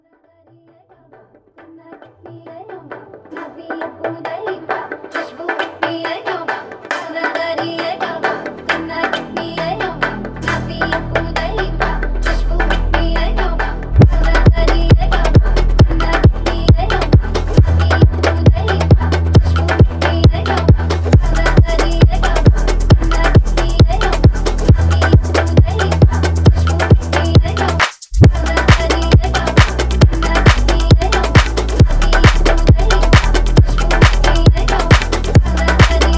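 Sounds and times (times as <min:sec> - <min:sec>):
tribal music: 0:06.9 - 0:36.1.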